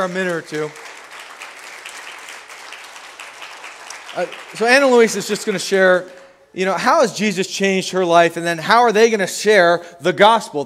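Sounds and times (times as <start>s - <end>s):
speech: 0.0s - 0.9s, 4.2s - 10.6s
audience applause: 0.0s - 6.3s.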